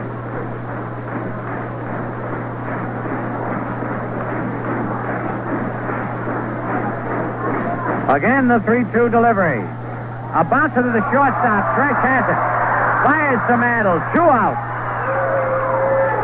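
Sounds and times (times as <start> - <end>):
Twins baseball fans stamping and stomping feet: 0.0 - 16.2
speech: 8.1 - 14.7.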